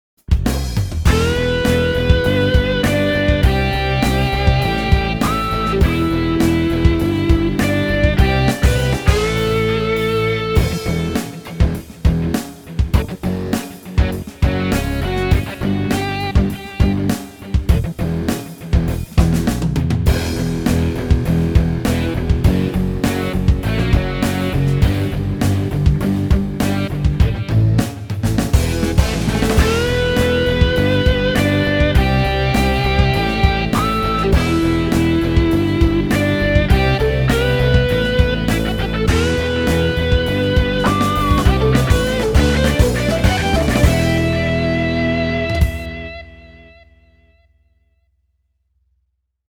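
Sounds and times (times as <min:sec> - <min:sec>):
English rock music: 0:00.2 - 0:47.3.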